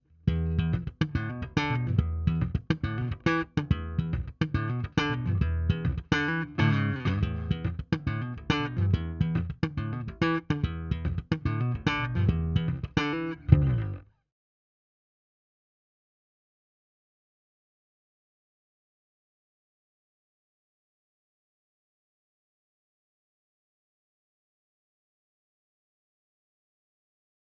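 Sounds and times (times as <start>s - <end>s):
slap bass through SVT410E cabinet recorded with SM57: 0.1s - 14.0s.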